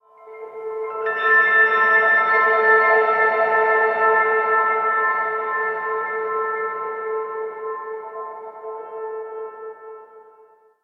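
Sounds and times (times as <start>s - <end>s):
piano: 0.0s - 10.6s.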